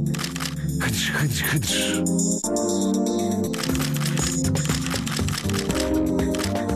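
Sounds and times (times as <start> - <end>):
camera shutter clicking: 0.1 - 0.6, 3.5 - 6.7
speech: 0.8 - 3.8.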